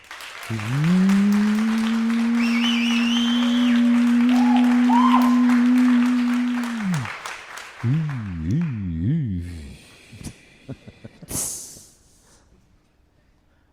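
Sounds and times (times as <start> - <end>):
audience applause: 0.0 - 8.7.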